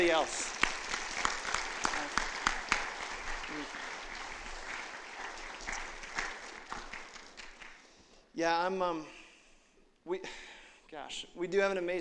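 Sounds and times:
speech: 0:00.0 - 0:00.6, 0:08.4 - 0:09.2, 0:10.0 - 0:12.0
audience applause: 0:00.0 - 0:07.9.

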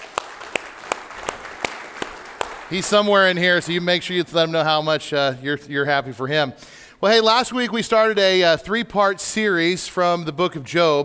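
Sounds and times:
audience clapping: 0:00.0 - 0:04.2
speech: 0:02.7 - 0:11.0.

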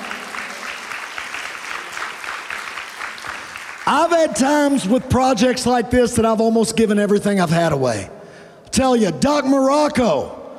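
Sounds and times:
audience clapping: 0:00.0 - 0:05.7
speech: 0:03.9 - 0:08.2, 0:08.8 - 0:10.4.

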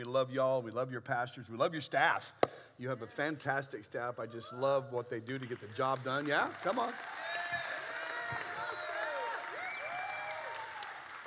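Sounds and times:
speech: 0:00.1 - 0:07.7
audience clapping: 0:05.3 - 0:11.2
audience shouts and whoops: 0:06.9 - 0:11.2.

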